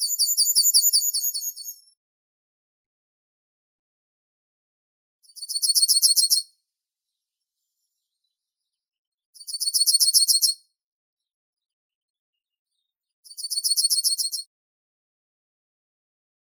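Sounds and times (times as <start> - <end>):
yellowhammer Emberiza citrinella calling: 0.0 - 1.8, 5.4 - 6.4, 9.5 - 10.6.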